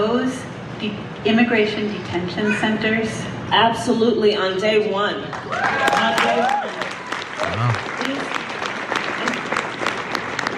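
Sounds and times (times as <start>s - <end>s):
speech: 0.3s - 6.9s
cheers and voices: 5.4s - 7.8s
crowd applause: 5.4s - 10.5s.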